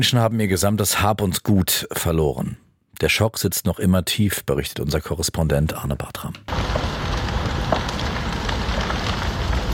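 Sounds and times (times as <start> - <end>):
speech: 0.0 - 7.1
flames crackling with pops and snaps: 6.4 - 9.7
roaring rush of wind-driven fire: 6.5 - 9.7.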